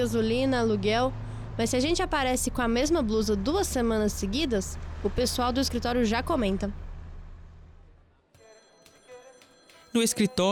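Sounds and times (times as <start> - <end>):
speech: 0.0 - 6.8, 10.0 - 10.5
black rotary dial telephone bell ringing in an office: 8.4 - 10.5.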